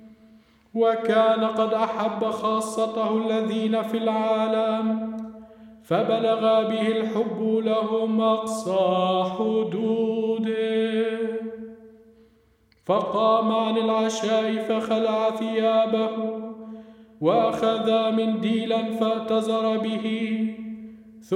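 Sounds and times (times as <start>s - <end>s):
gospel melody: 0.0s - 21.3s.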